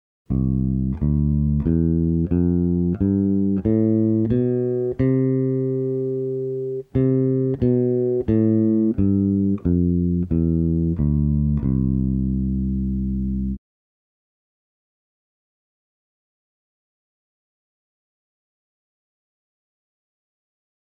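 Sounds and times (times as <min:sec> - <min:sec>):
music in Ionian mode: 0:00.3 - 0:13.6.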